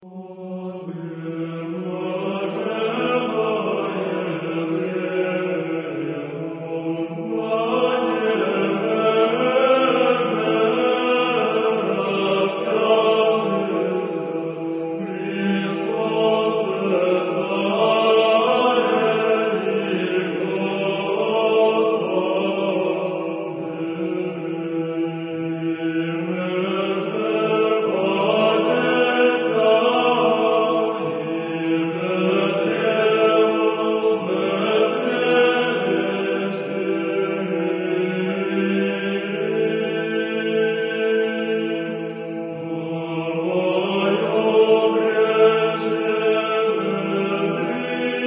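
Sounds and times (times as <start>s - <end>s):
irmos of a canon in tone eight chanted with ison drone: 0.0s - 48.2s.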